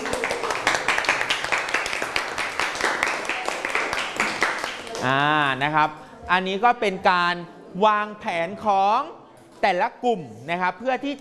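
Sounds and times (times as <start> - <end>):
students applauding a classmate: 0.0 - 5.2
speech: 5.0 - 11.1.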